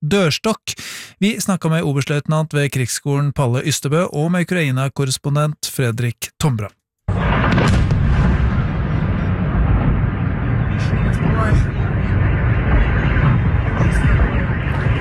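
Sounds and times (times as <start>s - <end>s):
speech: 0.0s - 6.8s, 11.3s - 11.8s
bomb explosions during drone attack: 7.1s - 14.9s.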